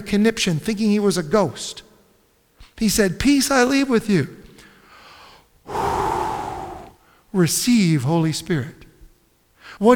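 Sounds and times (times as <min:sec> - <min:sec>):
speech: 0:00.0 - 0:01.9, 0:02.8 - 0:04.4, 0:07.3 - 0:08.8, 0:09.7 - 0:09.9
preacher imitating a long breathy exhale: 0:05.1 - 0:07.2.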